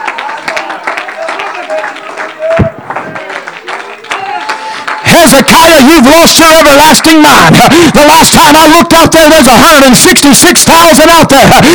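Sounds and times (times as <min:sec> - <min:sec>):
audience clapping: 0:00.0 - 0:07.8
speech: 0:05.2 - 0:11.7.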